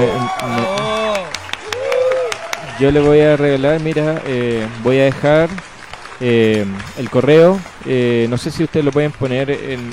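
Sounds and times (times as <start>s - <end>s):
speech: 0.0s - 1.0s, 2.8s - 9.9s
loud voices and cheering: 0.0s - 5.1s
scattered audience applause: 0.0s - 9.9s.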